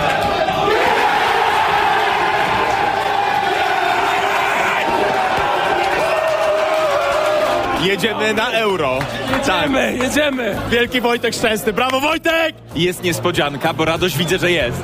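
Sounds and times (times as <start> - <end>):
football fans cheering after a national team's win: 0.0 - 10.7
whoops: 0.7 - 7.6
speech: 7.8 - 14.8.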